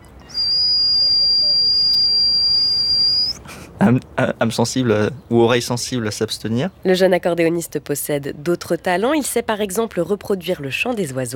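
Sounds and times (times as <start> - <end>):
voice imitating a pressure cooker whistle: 0.3 - 3.4
speech: 3.8 - 11.3.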